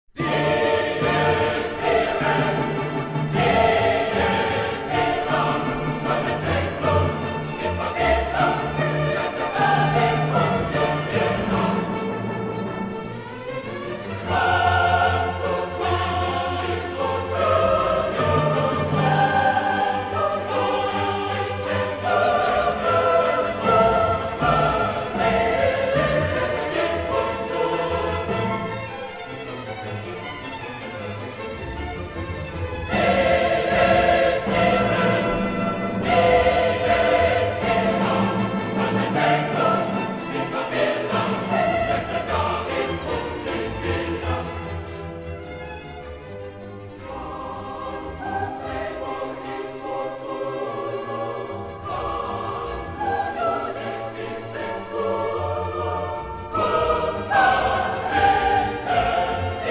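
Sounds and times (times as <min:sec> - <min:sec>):
requiem choral music: 0:00.1 - 0:59.7.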